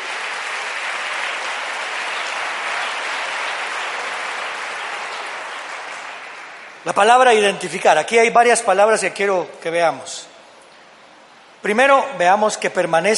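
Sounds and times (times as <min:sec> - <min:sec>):
loud audience applause: 0:00.0 - 0:07.4
speech: 0:06.8 - 0:10.3, 0:11.6 - 0:13.1.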